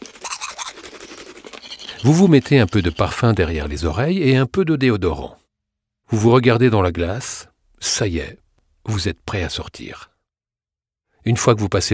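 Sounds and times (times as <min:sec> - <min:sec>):
brushing teeth with a toothbrush: 0:00.0 - 0:03.5
speech: 0:02.0 - 0:05.4, 0:06.1 - 0:10.1, 0:11.2 - 0:11.9.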